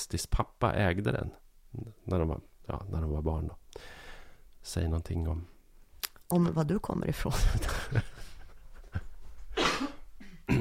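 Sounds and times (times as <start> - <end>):
speech: 0.0 - 4.0, 4.6 - 5.6, 6.3 - 8.3
laughter: 7.4 - 9.4
coughing fit: 9.5 - 10.5.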